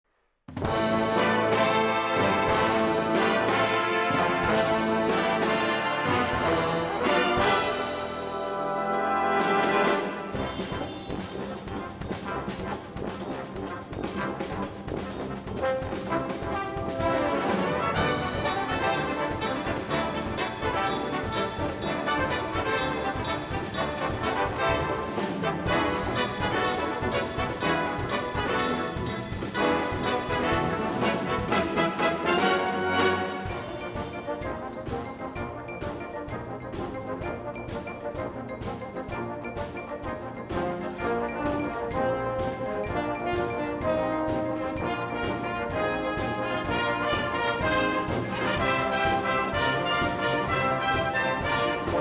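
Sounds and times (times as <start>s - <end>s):
brass band playing: 0.5s - 51.9s.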